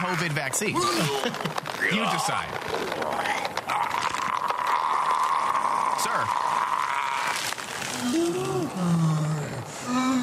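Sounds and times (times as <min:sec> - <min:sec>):
speech: 0:00.0 - 0:03.8, 0:06.0 - 0:06.6, 0:08.0 - 0:09.3
werewolf growl sound effect: 0:03.1 - 0:10.2.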